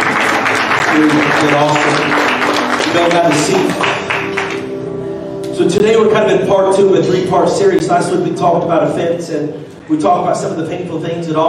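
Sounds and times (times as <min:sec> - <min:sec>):
audience clapping in praise: 0:00.0 - 0:04.8
speech: 0:01.0 - 0:04.3, 0:05.6 - 0:11.4.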